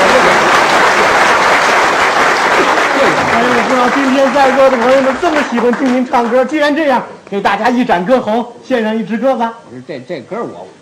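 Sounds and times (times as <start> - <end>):
audience applause: 0.0 - 6.6
speech: 3.8 - 10.8.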